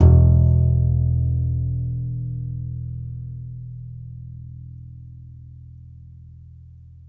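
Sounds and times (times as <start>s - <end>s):
contrabass balalaika plucked: 0.0s - 2.3s.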